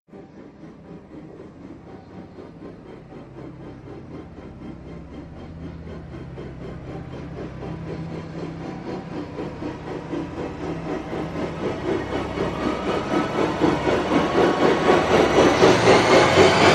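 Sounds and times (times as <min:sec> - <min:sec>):
rising sound: 0:07.6 - 0:16.7.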